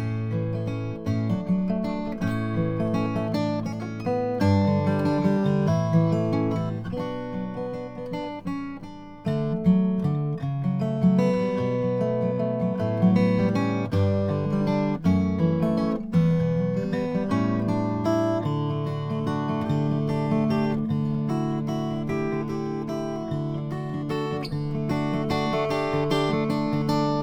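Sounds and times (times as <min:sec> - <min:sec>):
McPherson guitar with striped ebony: 0:00.0 - 0:27.2.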